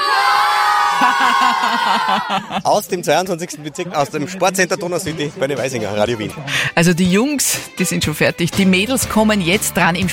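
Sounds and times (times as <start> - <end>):
rhythmic shouts: 0.0 - 2.6
schoolboys cheering their team's win at a school sports competition: 0.0 - 2.6
laughter: 0.7 - 5.6
speech: 1.2 - 10.1.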